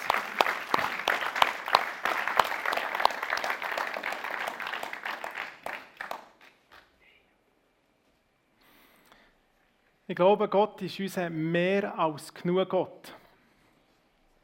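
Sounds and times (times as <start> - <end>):
audience applause: 0.0 - 6.7
speech: 10.1 - 13.2.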